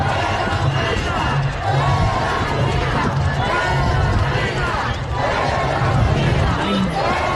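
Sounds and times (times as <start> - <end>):
crowd shouting at a supportive rally: 0.0 - 7.3.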